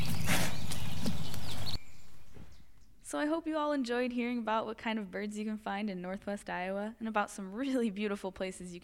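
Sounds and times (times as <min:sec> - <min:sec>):
deer sniffing at a recorder: 0:00.1 - 0:01.0
speech: 0:03.1 - 0:08.8.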